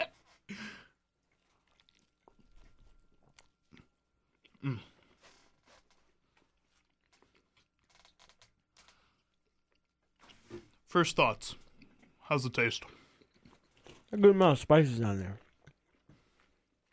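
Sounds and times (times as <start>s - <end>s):
biting and chewing a folded greasy New York pizza slice: 1.2s - 10.5s, 13.0s - 14.4s, 15.0s - 16.9s
speech: 4.6s - 4.9s, 10.9s - 11.6s, 12.3s - 13.0s, 14.1s - 15.4s.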